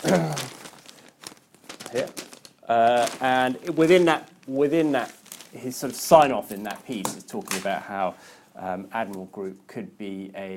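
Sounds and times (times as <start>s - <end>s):
speech: 0.0s - 0.6s, 1.9s - 10.5s
newspaper pages being handled, crackling and crinkling: 0.0s - 7.9s.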